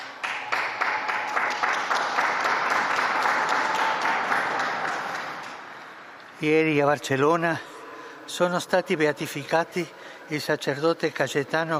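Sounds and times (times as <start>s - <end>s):
applause from a large crowd: 0.0s - 6.0s
speech: 6.4s - 7.7s, 8.3s - 11.7s.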